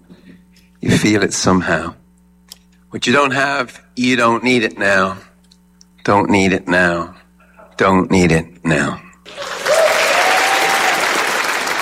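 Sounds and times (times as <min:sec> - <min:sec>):
speech: 0:01.0 - 0:02.0, 0:02.9 - 0:05.3, 0:06.0 - 0:07.2, 0:07.8 - 0:09.6
audience applause in the church of San Patricio: 0:09.3 - 0:11.7.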